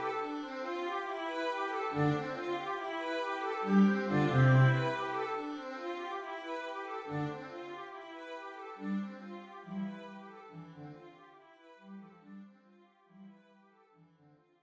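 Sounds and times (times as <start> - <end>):
cello: 0.0 - 11.0
violin: 0.0 - 12.4.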